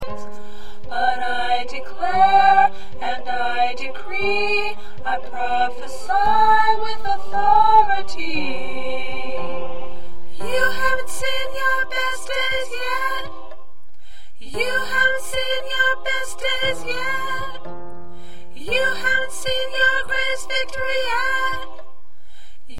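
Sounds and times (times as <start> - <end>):
soprano singing: 0.0 - 22.1.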